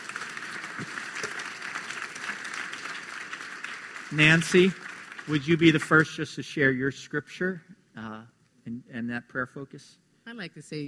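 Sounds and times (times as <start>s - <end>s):
audience applause: 0.0s - 6.1s
speech: 4.1s - 10.8s.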